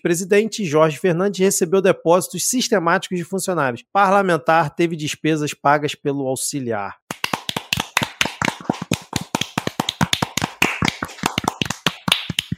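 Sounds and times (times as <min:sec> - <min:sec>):
speech: 0:00.0 - 0:07.0
applause: 0:07.1 - 0:12.5.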